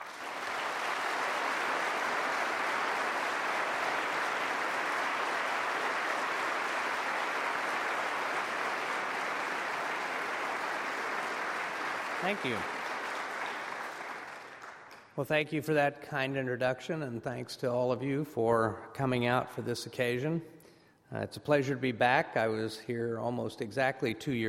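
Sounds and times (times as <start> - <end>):
audience applause at Seattle Town Hall welcoming Robert Gates: 0.0 - 15.1
speech: 12.2 - 12.8, 15.2 - 24.4.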